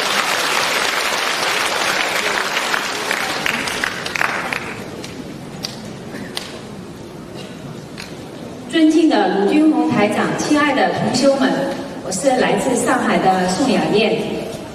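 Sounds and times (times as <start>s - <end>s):
audience applause: 0.0s - 5.1s
speech: 9.2s - 14.4s.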